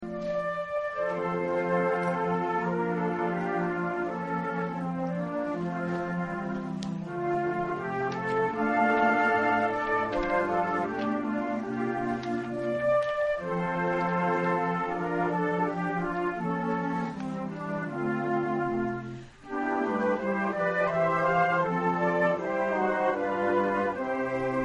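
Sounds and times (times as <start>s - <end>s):
flute in concert: 0.0s - 24.6s.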